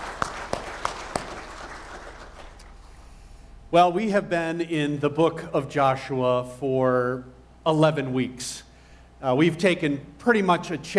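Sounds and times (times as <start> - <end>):
audience applause: 0.0 - 2.7
sharp claps: 0.0 - 2.8
speech: 3.7 - 10.9.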